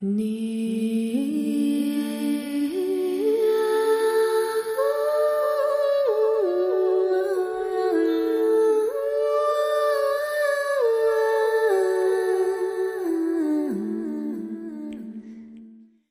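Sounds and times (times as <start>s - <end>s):
person singing: 0.0s - 16.1s.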